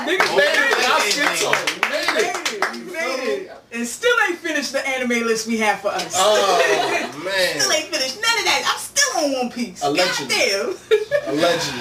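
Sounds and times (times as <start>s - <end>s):
speech: 0.0s - 2.4s, 3.4s - 11.7s
people clapping: 0.0s - 3.1s
laughter: 6.2s - 7.4s, 10.7s - 11.7s.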